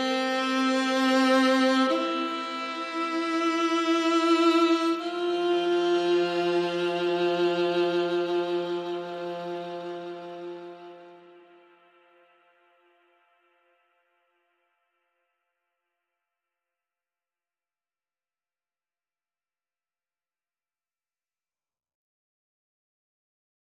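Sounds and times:
strings: 0:00.0 - 0:12.8.

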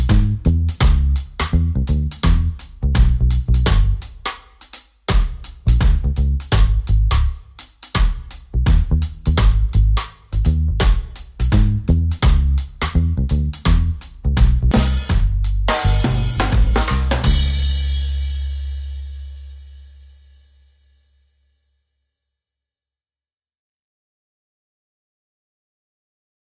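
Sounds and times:
drums: 0:00.0 - 0:20.8
bass: 0:00.0 - 0:21.8.

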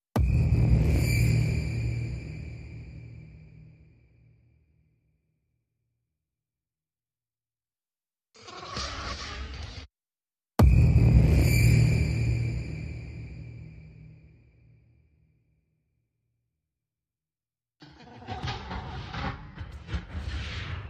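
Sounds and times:
percussion: 0:00.2 - 0:03.0, 0:10.6 - 0:13.4.

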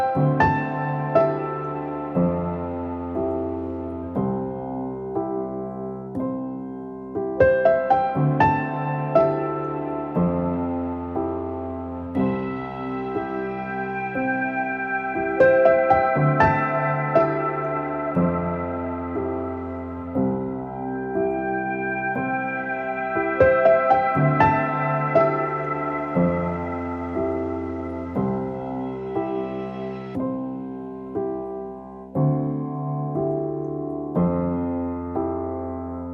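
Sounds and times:
piano: 0:00.0 - 0:36.1.

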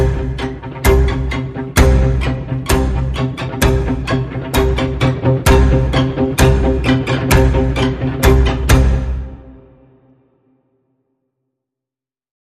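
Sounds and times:
sinister string pulse in the key of C: 0:00.0 - 0:09.8.

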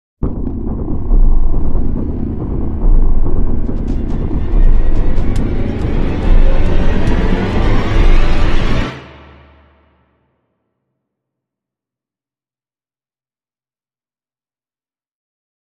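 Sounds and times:
crime music sting without percussion: 0:00.2 - 0:10.0.

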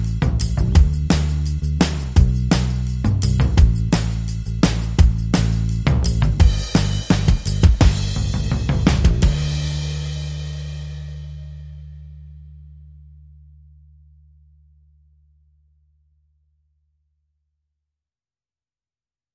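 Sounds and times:
drums: 0:00.0 - 0:12.1
bass: 0:00.0 - 0:17.3.

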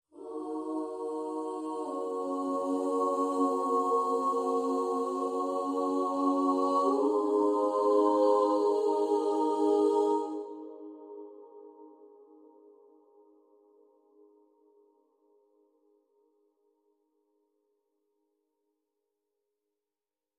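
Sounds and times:
intro choir singing: 0:00.1 - 0:12.2.

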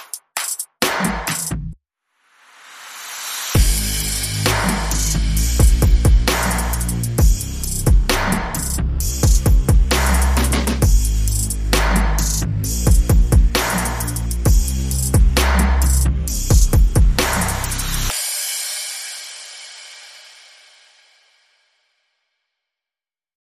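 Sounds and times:
drums: 0:00.0 - 0:01.8, 0:02.6 - 0:21.6
bass: 0:01.4 - 0:01.8, 0:03.6 - 0:18.1.

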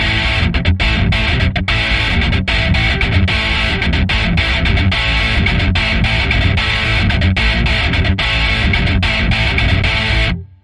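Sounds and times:
guitar in C: 0:00.0 - 0:10.6.

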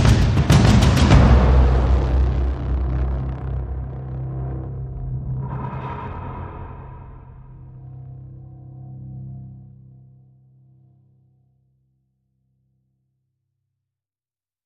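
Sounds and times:
percussion: 0:00.0 - 0:04.4.

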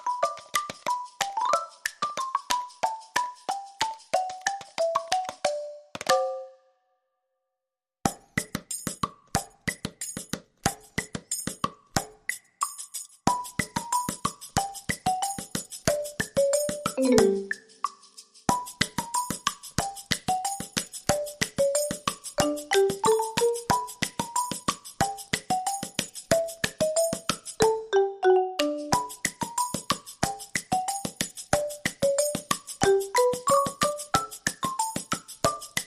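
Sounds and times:
light percussion: 0:00.0 - 0:06.6, 0:08.1 - 0:35.8
mallets: 0:04.2 - 0:06.6, 0:15.0 - 0:17.7, 0:20.3 - 0:35.8.

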